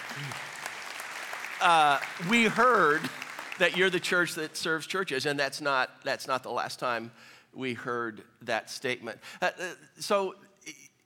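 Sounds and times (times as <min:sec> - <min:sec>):
audience applause: 0:00.0 - 0:04.5
speech: 0:00.2 - 0:00.4, 0:01.6 - 0:10.8.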